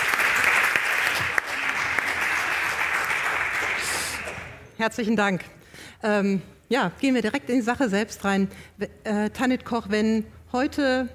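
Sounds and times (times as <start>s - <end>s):
audience applause: 0.0s - 4.6s
speech: 4.8s - 11.1s.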